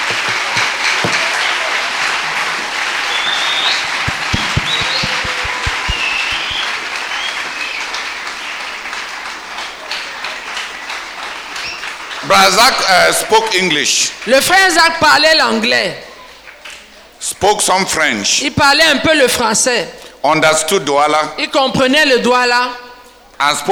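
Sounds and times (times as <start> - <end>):
crowd applauding: 0.0 - 16.9
speech: 12.3 - 16.1, 17.4 - 22.8, 23.4 - 23.7.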